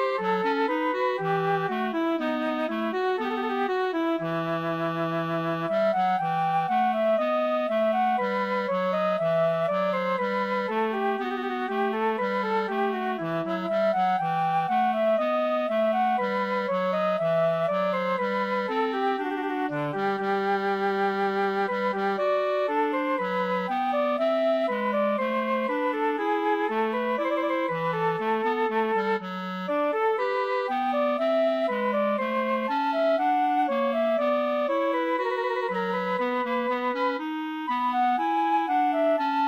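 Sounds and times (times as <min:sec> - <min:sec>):
bourree for flute and bass clarinet: 0:00.0 - 0:39.4.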